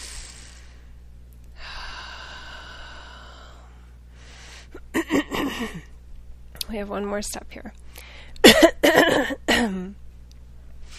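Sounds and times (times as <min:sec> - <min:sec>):
deep breath during a guided breathing exercise: 0:00.0 - 0:01.0, 0:01.6 - 0:04.8, 0:08.0 - 0:08.4
speech: 0:05.6 - 0:05.9, 0:06.7 - 0:07.8, 0:08.8 - 0:10.0.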